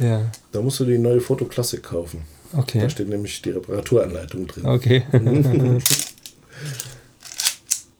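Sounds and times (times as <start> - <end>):
speech: 0.0 - 6.8
laughter: 4.5 - 5.9
camera shutter clicks: 5.9 - 7.8.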